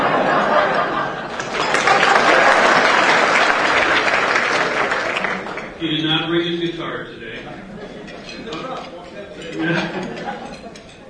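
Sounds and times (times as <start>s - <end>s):
audience applause: 0.0s - 5.8s
laughter: 0.0s - 5.8s, 7.4s - 11.0s.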